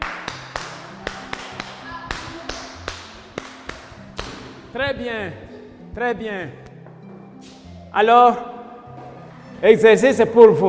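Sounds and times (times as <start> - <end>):
audience clapping: 0.0 - 4.4
speech: 4.7 - 6.6, 7.9 - 8.5, 9.6 - 10.6.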